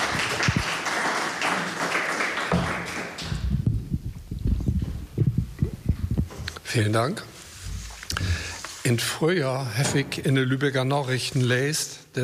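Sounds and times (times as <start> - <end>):
audience clapping: 0.0 - 3.6
low thumps and taps: 3.2 - 6.5
speech: 6.7 - 7.4, 8.9 - 12.2.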